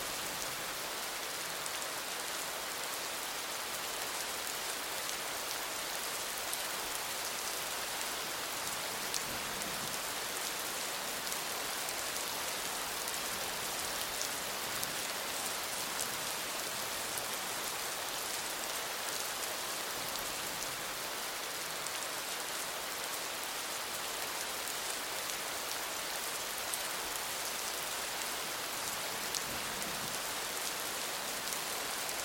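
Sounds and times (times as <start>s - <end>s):
rain in a city: 0.0s - 32.2s.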